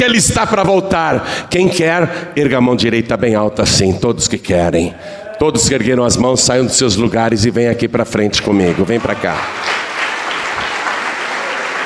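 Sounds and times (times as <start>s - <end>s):
speech: 0.0s - 9.9s
congregation applauding in a church service: 8.5s - 11.8s.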